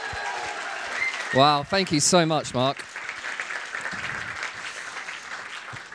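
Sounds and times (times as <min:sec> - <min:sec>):
audience at a church gathering applauding a speaker: 0:00.0 - 0:05.9
speech: 0:01.3 - 0:03.0.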